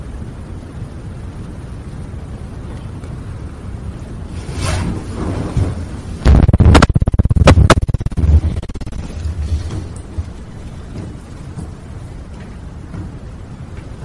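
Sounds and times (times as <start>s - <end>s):
explosion: 4.4s - 9.6s.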